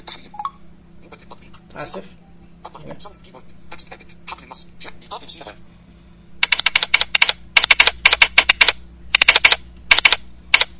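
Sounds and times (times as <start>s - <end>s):
speech: 1.8s - 5.7s
computer keyboard typing: 6.4s - 10.7s.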